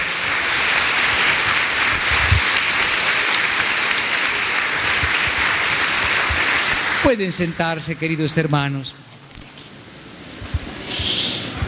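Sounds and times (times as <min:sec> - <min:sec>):
audience applause: 0:00.0 - 0:08.5
speech: 0:07.1 - 0:09.1.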